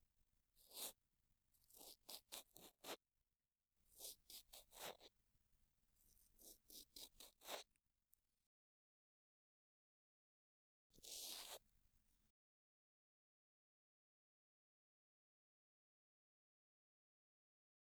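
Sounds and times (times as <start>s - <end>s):
cotton swab brushing ear rim and earlobe on left side: 0.6s - 1.0s, 1.7s - 3.0s, 4.0s - 5.1s, 11.0s - 11.6s.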